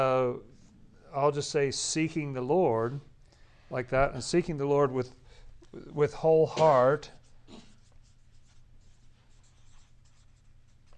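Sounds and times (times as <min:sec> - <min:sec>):
speech: 0:00.0 - 0:00.5, 0:01.1 - 0:03.1, 0:03.7 - 0:07.6
handwriting scratching on a surface: 0:07.1 - 0:10.9.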